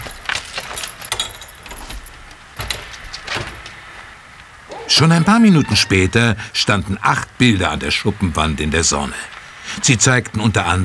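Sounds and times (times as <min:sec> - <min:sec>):
metal keys jangling: 0:00.0 - 0:04.0
laughter: 0:04.5 - 0:10.8
speech: 0:05.0 - 0:10.8.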